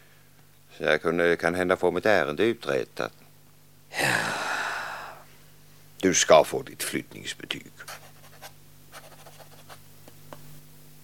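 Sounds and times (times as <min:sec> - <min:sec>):
speech: 0:00.8 - 0:03.2, 0:06.0 - 0:08.0
pen scratching on paper as a parish priest writes in the church register: 0:07.8 - 0:09.8.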